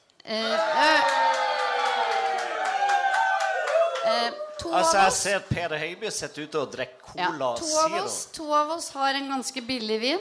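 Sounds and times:
speech: 0:00.3 - 0:00.7, 0:04.2 - 0:10.2
live audience cheering: 0:00.4 - 0:05.3
hands clapping: 0:01.0 - 0:04.2.

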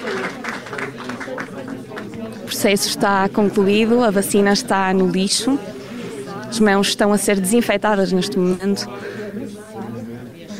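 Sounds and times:
crowd applauding in a hospital room: 0:00.0 - 0:03.3
voices talking and murmuring: 0:00.0 - 0:10.5
speech: 0:02.6 - 0:05.8, 0:06.5 - 0:09.5.

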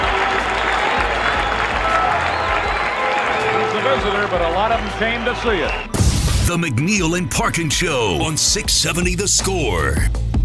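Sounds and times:
baseball crowd cheering after a 1965 strikeout: 0:00.0 - 0:06.0
speech: 0:04.3 - 0:10.3.

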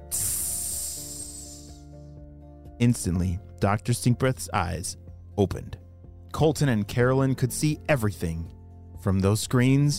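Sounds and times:
sizzling hiss: 0:00.0 - 0:01.8
speech: 0:02.8 - 0:05.8, 0:06.4 - 0:09.9.

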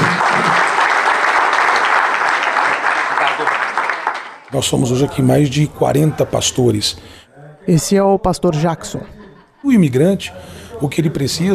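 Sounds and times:
laughter: 0:00.0 - 0:00.9, 0:08.5 - 0:10.2
audience applause: 0:00.0 - 0:04.5
speech: 0:04.6 - 0:11.5.

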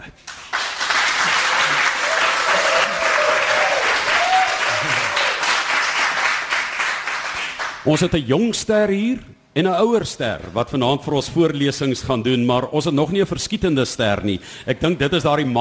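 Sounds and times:
audience applause: 0:00.2 - 0:07.8
speech: 0:07.9 - 0:15.5.

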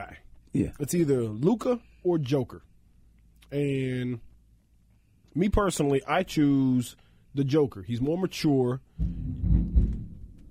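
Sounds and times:
speech: 0:00.0 - 0:02.7, 0:03.5 - 0:04.3, 0:05.3 - 0:09.5
thunder: 0:09.0 - 0:10.3.

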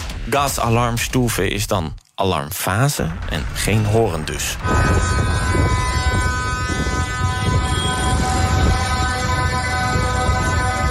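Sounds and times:
speech: 0:00.3 - 0:06.1
low rumbling drone: 0:03.2 - 0:10.8
horns sounding at a farmers' protest: 0:04.6 - 0:10.8.

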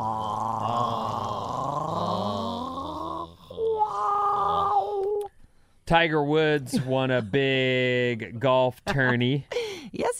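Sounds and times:
person gargling spit in the back of the throat: 0:00.0 - 0:05.3
speech: 0:05.9 - 0:10.1.

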